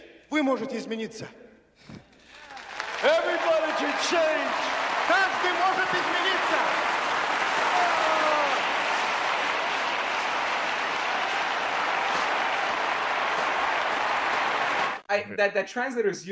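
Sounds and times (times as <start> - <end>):
speech: 0.3 - 1.4, 3.0 - 7.0, 15.1 - 16.3
audience cheering and applause: 2.2 - 15.0.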